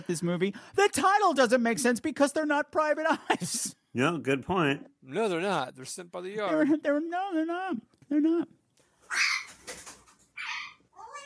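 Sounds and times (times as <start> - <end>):
speech: 0.0 - 9.4
pet bird squawking: 9.1 - 9.7, 10.4 - 11.2.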